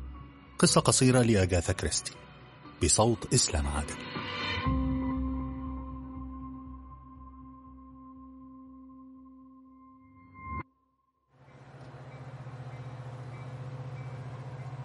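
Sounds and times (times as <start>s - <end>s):
speech: 0.6s - 4.8s
Plymouth express train idling at a platform of Newton Abbot station: 11.4s - 14.8s
soft rhythmic clatter under train: 11.4s - 14.8s.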